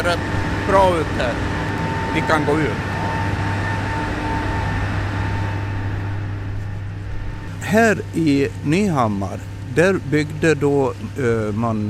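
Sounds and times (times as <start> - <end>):
speech: 0.0 - 2.9, 7.7 - 11.8
old hydroelectric power station humming: 0.0 - 11.8.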